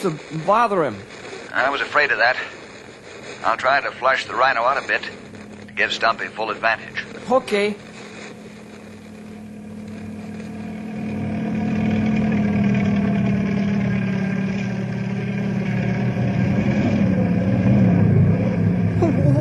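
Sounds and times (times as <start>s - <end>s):
speech: 0.0s - 2.6s, 3.4s - 5.2s, 5.8s - 7.9s
helicopter engine and rotor struggling: 3.4s - 18.6s.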